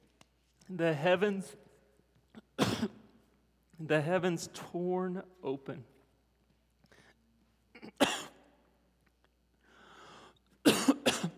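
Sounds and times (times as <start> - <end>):
speech: 0.7 - 1.6, 2.8 - 3.0, 3.8 - 5.9
man coughing after something went down the wrong way: 2.4 - 3.0, 7.8 - 8.4, 10.6 - 11.3.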